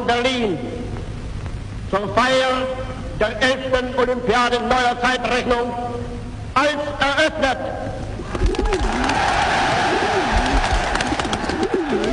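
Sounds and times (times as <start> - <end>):
speech: 0.1 - 0.8, 1.9 - 7.9
pigeons or doves cooing: 8.2 - 12.1
crowd roar: 8.4 - 12.1.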